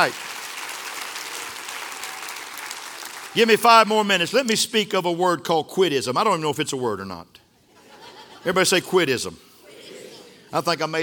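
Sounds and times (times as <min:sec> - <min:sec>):
speech: 0:00.0 - 0:00.3, 0:03.4 - 0:07.4, 0:08.4 - 0:09.5, 0:10.5 - 0:11.0
audience clapping hands: 0:00.0 - 0:04.0
laughter: 0:07.7 - 0:09.0, 0:09.6 - 0:10.6.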